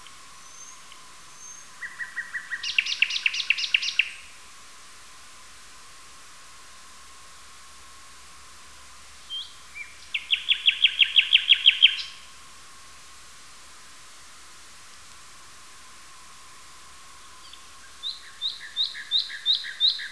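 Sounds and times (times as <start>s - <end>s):
nightingale song with loud repeated chirps: 0.0s - 4.4s, 9.2s - 12.3s, 16.5s - 20.0s.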